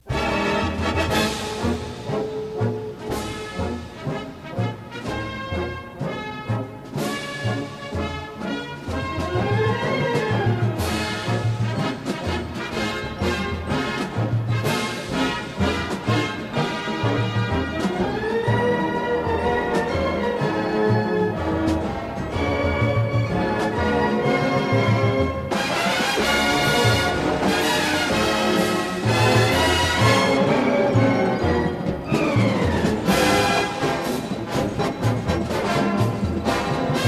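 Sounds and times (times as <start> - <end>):
band playing swing march: 0.0 - 37.0.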